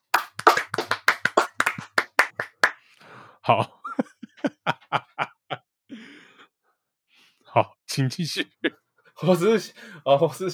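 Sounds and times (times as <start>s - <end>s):
hand claps: 0.0s - 2.8s
speech: 3.4s - 4.1s, 7.6s - 8.6s, 9.2s - 10.5s.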